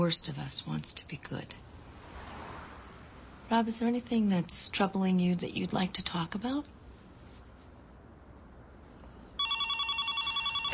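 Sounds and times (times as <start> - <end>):
speech: 0.0 - 1.7, 3.5 - 6.8
mobile phone electronic ringtone: 9.4 - 10.7.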